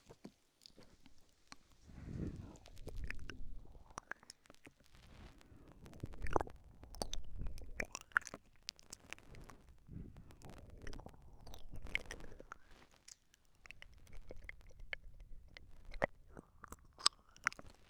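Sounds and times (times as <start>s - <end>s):
soft wet mouth clicks, smacks and tongue noises: 0.2s - 4.9s, 5.7s - 17.8s
breathy low blowing: 1.9s - 2.8s.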